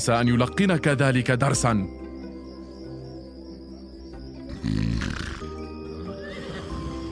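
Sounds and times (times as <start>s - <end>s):
speech: 0.0s - 2.0s
horse whinnying in a governor's stable of purebred horses: 4.6s - 7.0s.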